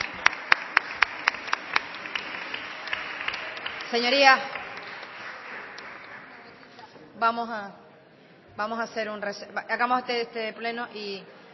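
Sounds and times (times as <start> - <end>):
applause: 0.0 - 6.8
speech: 3.9 - 4.6, 7.2 - 7.8, 8.6 - 11.5.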